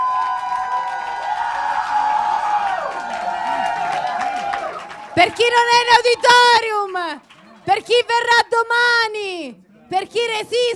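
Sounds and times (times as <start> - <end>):
audience applause: 0.0 - 8.3
speech: 5.2 - 10.7.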